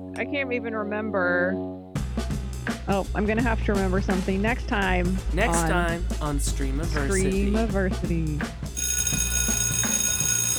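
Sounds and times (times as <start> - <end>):
speech: 0.2 - 1.8, 2.6 - 8.6
bell ringing: 8.8 - 10.5.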